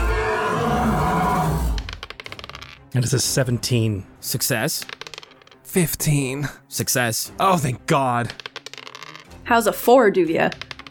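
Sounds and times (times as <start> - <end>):
monster shriek sound effect: 0.0 - 1.9
speech: 2.9 - 5.0, 5.7 - 8.4, 9.5 - 10.6.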